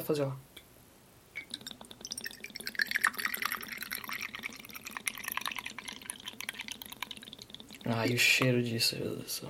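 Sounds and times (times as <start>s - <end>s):
speech: 0.0s - 0.5s, 7.8s - 9.4s
vermouth glugging from a bottle: 1.4s - 8.5s.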